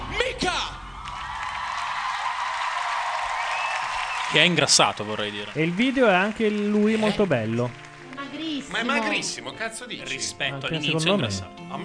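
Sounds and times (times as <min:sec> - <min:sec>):
huge audience applause on the X Factor stage: 0:00.9 - 0:09.5
speech: 0:04.3 - 0:07.8, 0:08.4 - 0:11.8.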